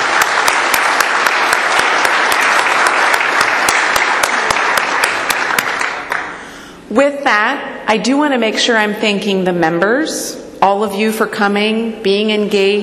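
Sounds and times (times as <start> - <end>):
audience applause: 0.0 - 6.4
speech: 6.9 - 12.8.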